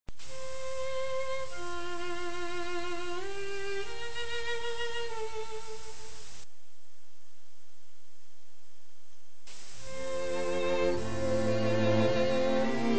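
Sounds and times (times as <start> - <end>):
music harmonization: 0.2 - 6.5, 9.5 - 12.9.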